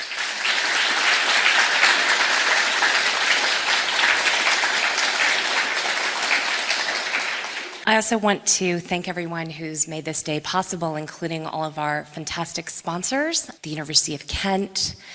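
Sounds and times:
audience applause: 0.0s - 7.8s
speech: 7.9s - 15.1s.

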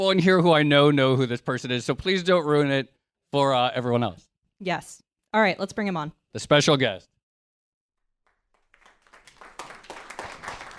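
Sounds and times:
speech: 0.0s - 7.1s
audience clapping for a guest: 8.2s - 10.7s.

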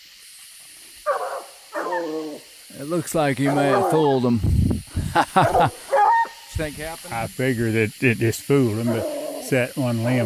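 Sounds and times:
hunting dogs barking treed: 1.1s - 2.4s, 3.4s - 4.2s, 5.4s - 6.4s, 8.8s - 9.5s
speech: 2.0s - 4.6s, 5.2s - 5.8s, 6.6s - 10.2s
laughter: 5.0s - 6.0s.

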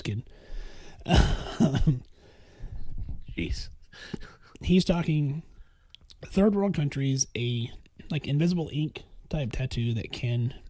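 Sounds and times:
speech: 0.0s - 2.1s, 3.4s - 5.5s, 6.2s - 10.6s
person coughing: 1.0s - 2.1s.

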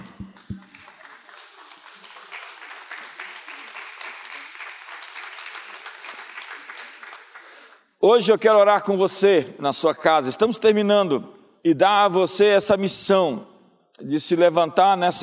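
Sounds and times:
audience applause: 0.0s - 7.7s
speech: 8.0s - 15.2s.

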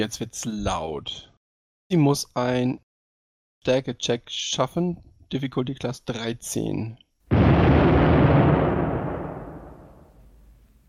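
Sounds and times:
speech: 0.0s - 1.3s, 1.9s - 2.8s, 3.6s - 7.0s
thunderclap sound effect: 7.3s - 10.4s.

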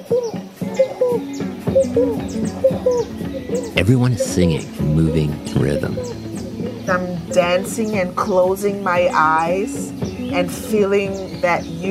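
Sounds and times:
frog calling in forest: 0.8s - 8.3s
speech: 1.9s - 6.2s, 6.9s - 11.8s.

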